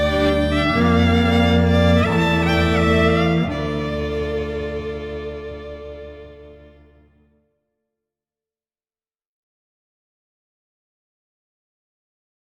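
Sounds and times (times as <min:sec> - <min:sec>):
string quartet: 0:00.0 - 0:07.2.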